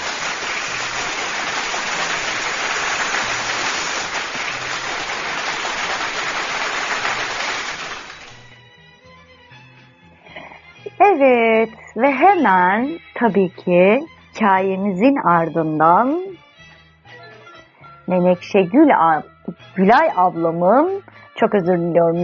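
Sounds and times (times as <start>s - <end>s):
applause: 0.0s - 8.5s
speech: 12.0s - 16.3s, 18.1s - 22.2s.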